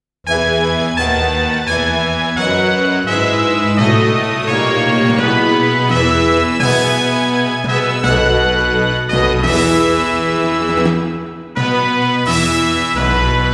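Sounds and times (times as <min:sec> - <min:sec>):
brass band playing: 0:00.3 - 0:13.5.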